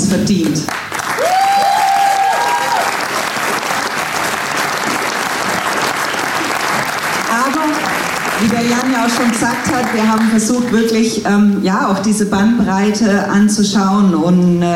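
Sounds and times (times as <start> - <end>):
speech: 0.1 - 1.3, 8.4 - 14.7
audience applause: 0.7 - 10.4
whoops and cheers: 1.1 - 3.1.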